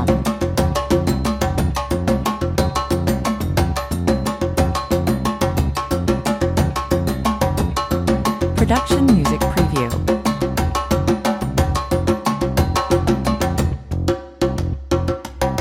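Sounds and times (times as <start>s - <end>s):
bass: 0.0s - 15.5s
drums: 0.0s - 15.5s.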